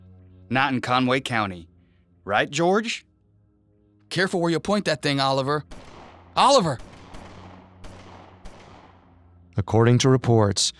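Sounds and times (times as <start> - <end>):
speech: 0.5 - 1.7, 2.3 - 3.1, 4.1 - 5.8, 6.4 - 6.9, 9.6 - 10.7
Smith & Wesson revolver firing accidentally: 5.6 - 9.3.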